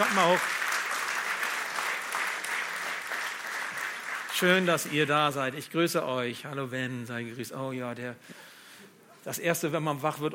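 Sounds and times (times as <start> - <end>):
speech: 0.0 - 0.6, 4.4 - 8.4, 9.2 - 10.3
audience applause: 0.0 - 5.2.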